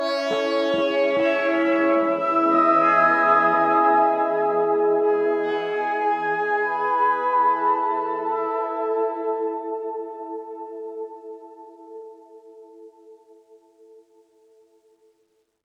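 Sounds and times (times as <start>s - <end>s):
karaoke machine pad: 0.0s - 12.5s.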